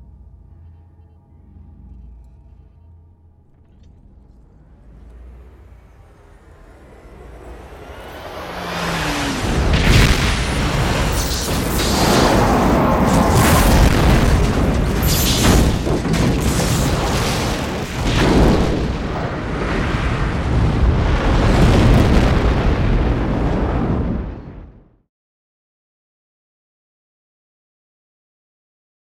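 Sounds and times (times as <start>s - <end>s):
bridge explosion: 5.8s - 25.0s.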